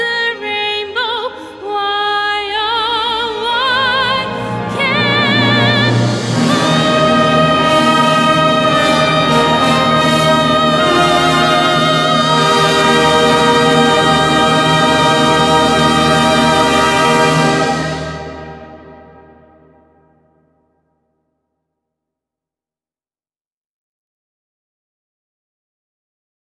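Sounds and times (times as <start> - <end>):
female vocals: 0.0 - 17.8.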